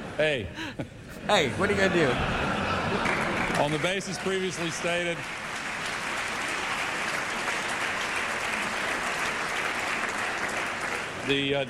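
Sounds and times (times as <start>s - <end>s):
speech: 0.2s - 5.4s, 11.3s - 11.6s
laughter: 0.6s - 4.6s
audience applause in chamber: 2.6s - 11.6s.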